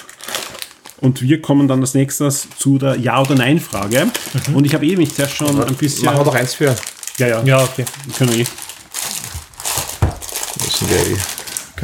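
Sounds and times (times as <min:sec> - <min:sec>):
snack packaging crinkling: 0:00.0 - 0:11.8
speech: 0:01.0 - 0:08.6, 0:10.9 - 0:11.8.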